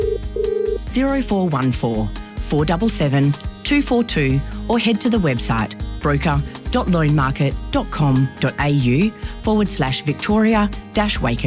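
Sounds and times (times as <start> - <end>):
telephone ringing: 0.0 - 0.8
speech: 1.0 - 11.4.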